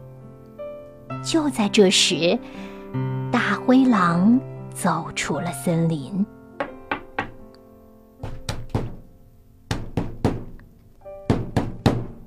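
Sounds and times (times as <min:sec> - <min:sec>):
speech: 0:01.2 - 0:06.4
knocking on a door: 0:06.6 - 0:07.4, 0:08.2 - 0:09.1, 0:09.7 - 0:10.6, 0:11.2 - 0:12.2.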